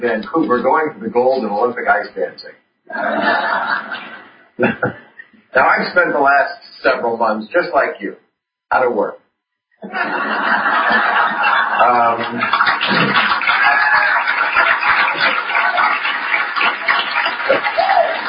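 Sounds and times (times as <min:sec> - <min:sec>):
speech: 0:00.0 - 0:09.2, 0:09.8 - 0:13.3
studio audience cheers and laughter: 0:02.9 - 0:04.3, 0:09.8 - 0:18.2
studio audience applauding: 0:10.4 - 0:18.2.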